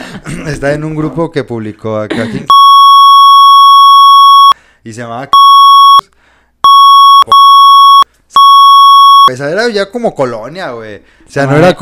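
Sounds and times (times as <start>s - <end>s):
speech: 0.3s - 2.6s, 4.8s - 5.4s, 9.3s - 11.8s
censorship bleep: 2.5s - 4.6s, 5.4s - 9.3s.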